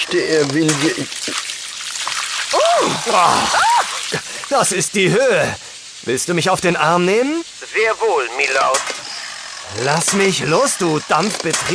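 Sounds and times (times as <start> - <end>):
water pouring and splashing from a watering can: 0.0 - 4.7
speech: 0.1 - 1.4, 2.5 - 9.0, 9.7 - 11.7
short rising-and-falling vocal cries: 2.5 - 4.4.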